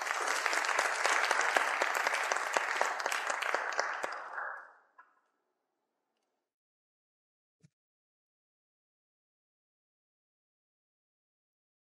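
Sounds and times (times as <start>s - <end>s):
round of applause: 0.0s - 5.2s.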